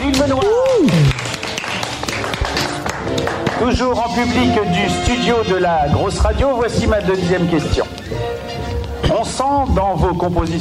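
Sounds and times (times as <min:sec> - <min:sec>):
studio audience applause: 0:00.0 - 0:03.8
speech: 0:03.6 - 0:08.0, 0:09.2 - 0:10.5.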